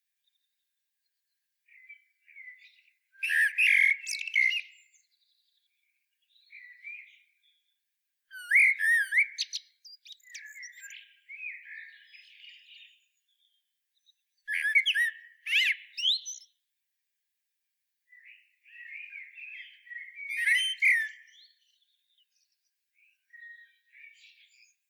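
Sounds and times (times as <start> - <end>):
common blackbird song: 0.0 - 16.8, 18.0 - 24.8.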